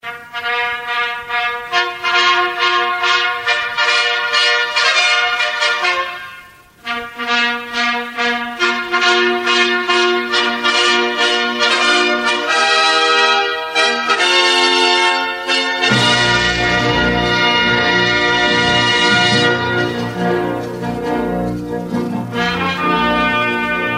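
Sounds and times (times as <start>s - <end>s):
fanfares for an award ceremony: 0.1s - 23.9s.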